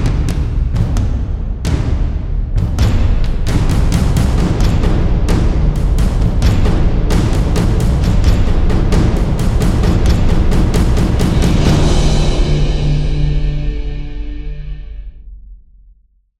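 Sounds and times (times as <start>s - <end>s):
ambient drums: 0.0s - 15.4s.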